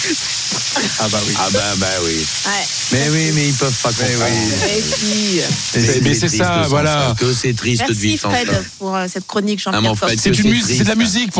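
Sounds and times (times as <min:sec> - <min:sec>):
laughter: 0:00.0 - 0:01.8, 0:03.8 - 0:08.7
sausages and vegetables sizzling on a barbecue grill: 0:00.0 - 0:11.3
speech: 0:00.1 - 0:11.3.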